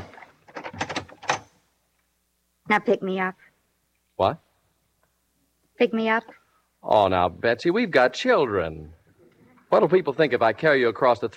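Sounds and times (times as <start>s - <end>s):
door being opened with rattling, clattering mechanical sounds: 0.0s - 1.5s
speech: 2.7s - 3.5s, 4.2s - 4.4s, 5.8s - 9.0s, 9.7s - 11.3s.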